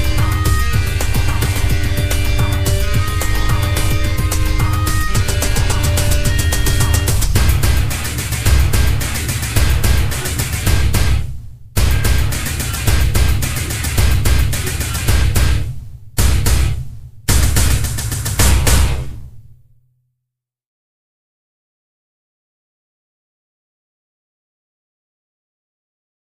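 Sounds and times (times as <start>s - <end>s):
foreboding industrial sounds: 0.0s - 19.4s.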